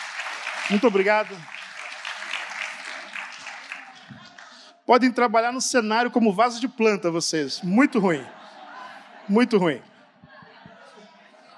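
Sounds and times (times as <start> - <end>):
audience applause: 0.0 - 4.8
laughter: 0.4 - 5.1, 6.5 - 11.5
speech: 0.7 - 1.6, 4.9 - 8.4, 9.3 - 9.9.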